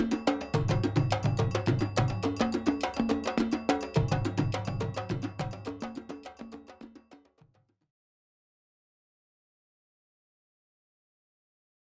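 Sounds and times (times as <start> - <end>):
djembe ensemble: 0.0 - 7.6.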